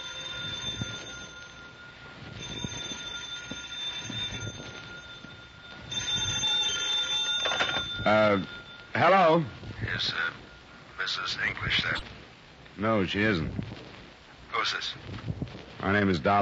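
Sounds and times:
telephone ringing: 0.0 - 12.0
speech: 8.1 - 10.4, 11.1 - 12.2, 12.8 - 13.8, 14.6 - 16.4.

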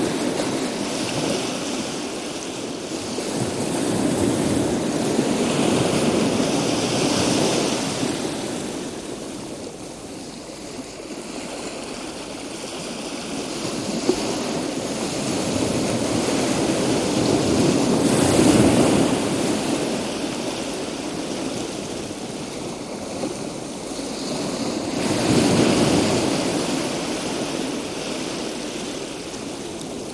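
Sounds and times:
calm sea: 0.0 - 30.1.

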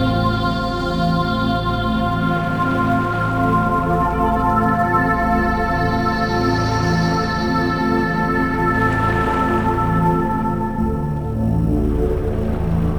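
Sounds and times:
relaxation and meditation music: 0.0 - 12.9
ocean waves: 8.6 - 11.3.

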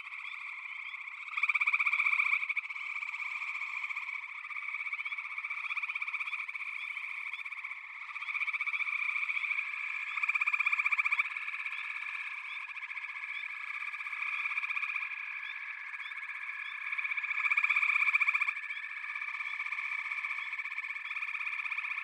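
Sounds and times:
frogs pulsed chorus: 0.0 - 22.0.

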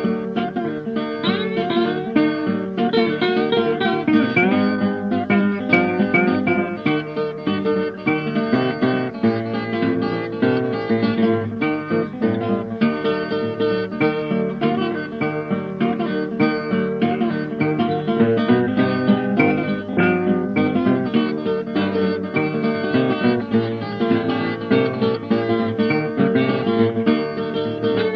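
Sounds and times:
bottleneck slide guitar blues: 0.0 - 28.1.

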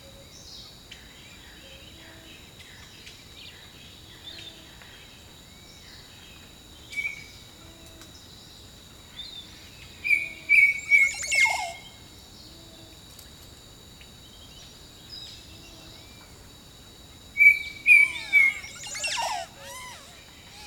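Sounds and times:
steady high insect drone: 0.0 - 20.6
bird whistling song: 10.1 - 11.9, 17.4 - 20.6.

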